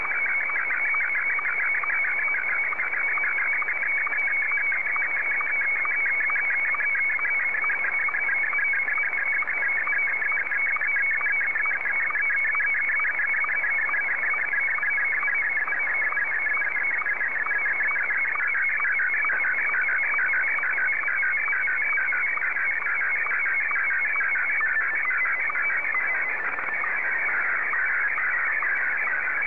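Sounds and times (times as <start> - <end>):
Martin 1 slow-scan television signal: 0.0 - 29.4.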